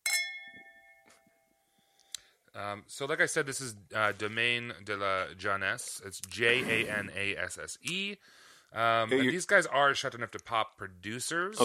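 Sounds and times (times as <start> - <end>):
wine glasses clinking in a toast: 0.0 - 1.0
speech: 2.6 - 11.6.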